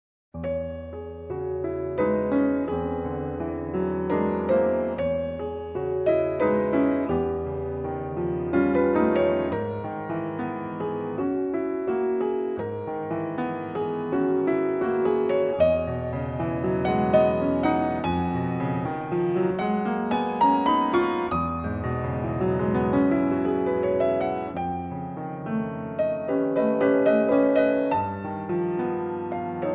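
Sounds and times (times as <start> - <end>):
piano impromptu: 0.4 - 29.7.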